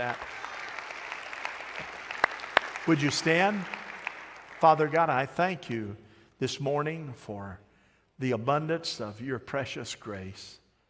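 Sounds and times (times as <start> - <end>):
speech: 0.0 - 0.4, 2.8 - 3.8, 4.6 - 7.6, 8.2 - 10.6
clapping: 0.0 - 5.2.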